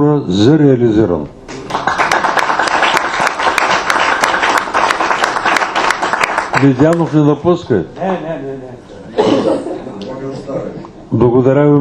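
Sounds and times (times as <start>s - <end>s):
speech: 0.0s - 1.9s, 6.6s - 9.7s, 11.1s - 11.7s
audience applause: 1.5s - 7.3s.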